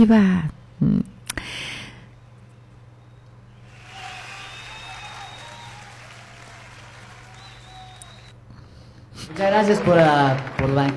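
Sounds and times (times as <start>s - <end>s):
speech: 0.0s - 1.8s, 9.4s - 10.9s
audience applause: 3.7s - 8.3s, 9.3s - 10.9s.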